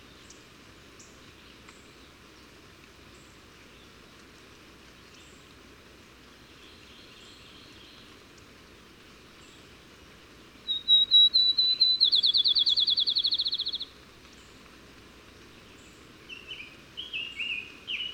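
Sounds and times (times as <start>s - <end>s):
bird singing high whistles and a rapid trill: 10.7s - 13.9s.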